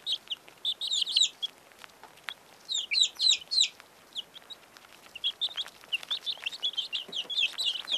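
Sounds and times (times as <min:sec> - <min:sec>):
birds twittering: 0:00.0 - 0:01.6, 0:02.2 - 0:07.9.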